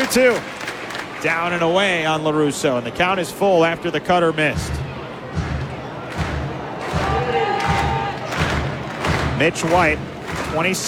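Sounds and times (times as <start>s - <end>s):
baseball fans clapping in unison: 0.0s - 1.8s, 4.6s - 10.8s
speech: 0.1s - 0.6s, 1.2s - 4.8s, 9.4s - 10.8s
constant murmur of baseball fans: 4.5s - 10.8s.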